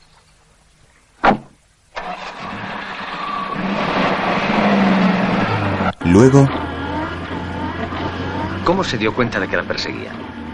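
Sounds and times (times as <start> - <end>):
car door thudding shut: 1.2 - 1.6
sports car engine roaring and accelerating away: 2.0 - 10.5
speech: 6.0 - 6.6, 8.7 - 10.3.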